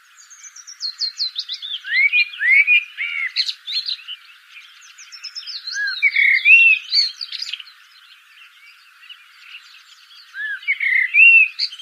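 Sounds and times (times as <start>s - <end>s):
common blackbird song: 0.0s - 11.8s.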